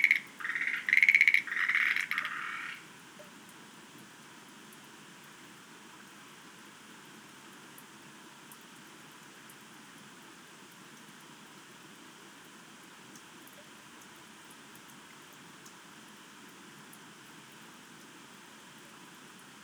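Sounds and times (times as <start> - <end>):
Schlegel's green tree frog calling: 0.0 - 2.9.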